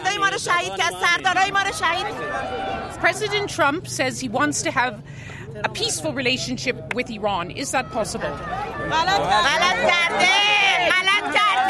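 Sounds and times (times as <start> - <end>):
crowd shouting an emphatic no: 0.0 - 3.6, 7.5 - 11.6
speech: 0.4 - 11.6.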